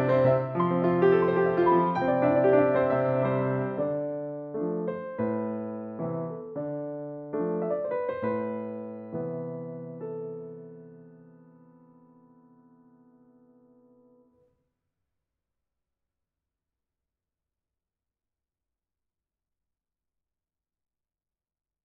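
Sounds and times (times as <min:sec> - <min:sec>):
Viennese waltz on piano: 0:00.0 - 0:14.3.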